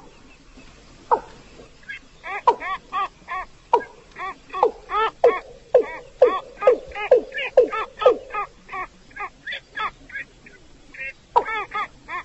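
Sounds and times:
Chinese edible frog giving pulsed notes and croaking bursts: 2.2s - 9.9s.

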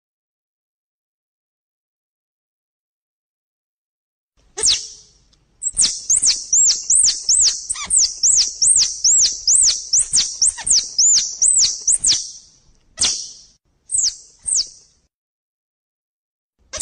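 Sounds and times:
squirrel chattering: 4.6s - 5.0s, 5.6s - 12.4s, 13.0s - 14.8s.

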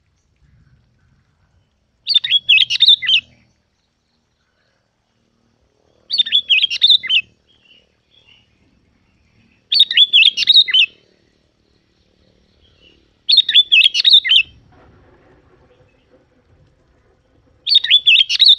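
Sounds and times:
Yellow-vented bulbul bubbly chirping song: 0.0s - 4.3s, 6.0s - 8.6s, 9.6s - 11.0s, 11.7s - 14.6s, 15.6s - 18.5s.

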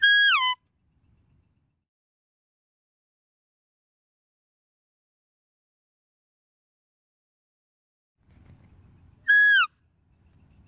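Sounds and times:
deer whistled calls: 0.0s - 0.6s, 9.3s - 9.7s.

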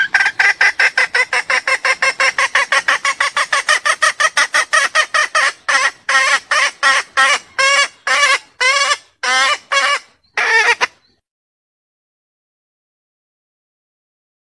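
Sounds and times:
junglefowl hen calling: 0.0s - 11.1s.

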